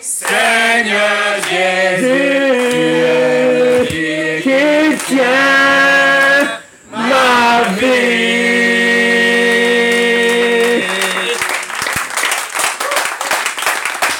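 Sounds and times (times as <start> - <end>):
speech: 0.0 - 3.0
congregation clapping in a church: 0.0 - 6.6, 7.2 - 14.1.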